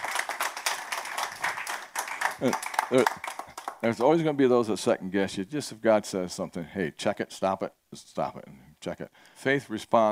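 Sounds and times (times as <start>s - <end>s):
crowd clapping: 0.0s - 4.2s
speech: 2.4s - 10.0s.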